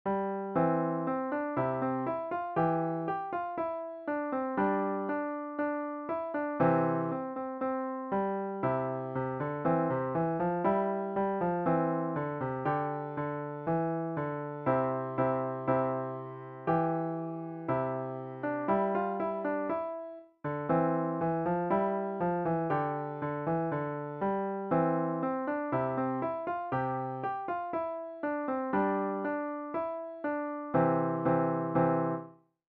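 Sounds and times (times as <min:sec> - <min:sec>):
piano tune: 0:00.0 - 0:32.5.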